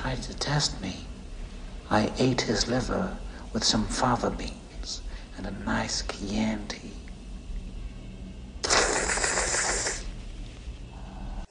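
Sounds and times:
speech: 0.1 - 1.2, 1.9 - 7.0
fast wet slurping made with the mouth: 8.6 - 10.1.

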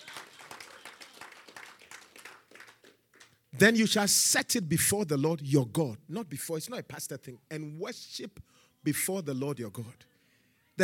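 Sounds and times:
audience clapping: 0.0 - 3.5
speech: 3.6 - 10.1.

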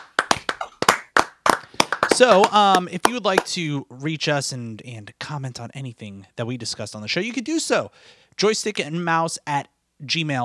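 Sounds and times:
hand clapping: 0.0 - 3.7
speech: 2.2 - 10.4.

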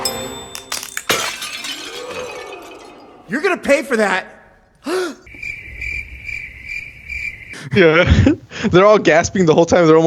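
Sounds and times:
glassy shards tinkling: 0.0 - 3.1
vase hitting the floor and shattering: 0.0 - 3.4
speech: 3.3 - 5.1, 7.7 - 10.0.

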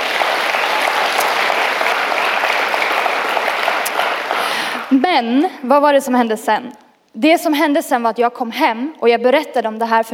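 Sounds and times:
audience applause: 0.0 - 5.0
speech: 5.1 - 10.1.

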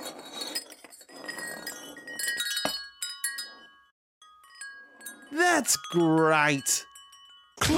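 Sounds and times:
wind chime tinkling: 2.0 - 7.6
speech: 5.6 - 6.9.

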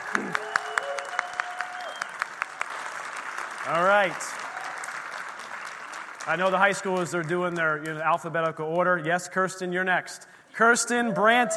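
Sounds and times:
round of applause: 0.0 - 8.0
speech: 3.7 - 4.4, 6.3 - 11.5.

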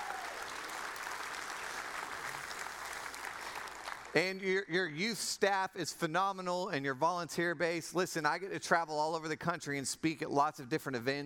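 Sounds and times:
audience applause: 0.0 - 4.2
speech: 4.1 - 11.2.

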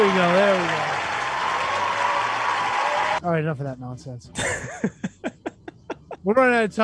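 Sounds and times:
audience applause: 0.0 - 3.2
speech: 3.2 - 5.2, 6.2 - 6.8
laughter: 4.4 - 6.3.

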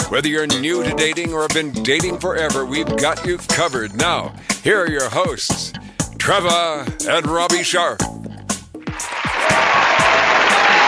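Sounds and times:
speech: 0.1 - 8.3
audience applause sound effect: 8.9 - 10.8.

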